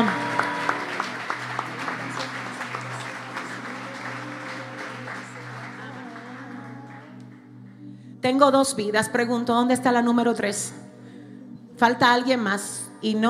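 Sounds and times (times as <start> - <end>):
audience applause: 0.0 - 7.2
speech: 8.3 - 10.8, 11.8 - 13.2.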